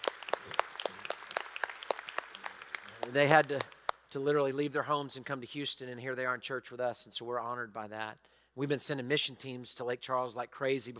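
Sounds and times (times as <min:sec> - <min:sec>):
church congregation in Houston applauding: 0:00.0 - 0:04.1
speech: 0:03.1 - 0:10.9.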